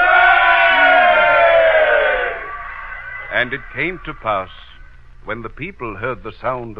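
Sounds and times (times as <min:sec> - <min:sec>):
large crowd shouting: 0:00.0 - 0:04.1
speech: 0:03.4 - 0:06.7.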